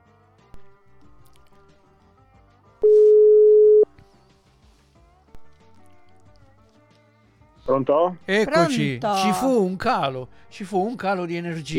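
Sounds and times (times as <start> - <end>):
telephone line tone after the line dropped: 2.8 - 3.9
speech: 7.7 - 11.7.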